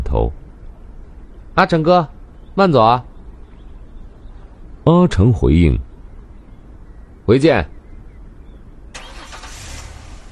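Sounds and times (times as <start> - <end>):
speech: 0.2 - 0.4, 1.6 - 3.1, 4.8 - 5.9, 7.3 - 7.7
car pulling away from a residence: 9.0 - 10.3.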